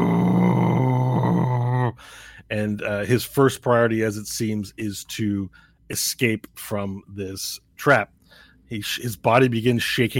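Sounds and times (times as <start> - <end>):
voice imitating a monster's growl: 0.0 - 2.0
speech: 2.0 - 10.1.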